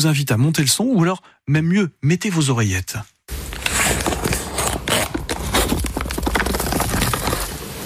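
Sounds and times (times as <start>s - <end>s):
speech: 0.0s - 3.2s
cheese packages being opened with crisp crinkles: 3.3s - 7.6s
paper wrapping rustling off cheese: 3.3s - 7.6s.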